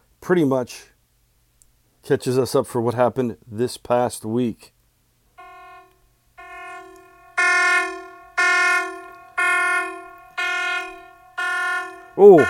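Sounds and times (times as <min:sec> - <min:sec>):
speech: 0:00.2 - 0:00.9, 0:02.0 - 0:04.8, 0:12.2 - 0:12.4
siren sound effect: 0:05.4 - 0:12.4.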